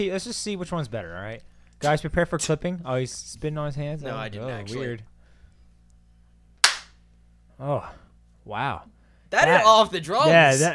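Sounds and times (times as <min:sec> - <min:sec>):
speech: 0:00.0 - 0:05.1, 0:07.6 - 0:10.7
loud hand clap: 0:06.6 - 0:07.0.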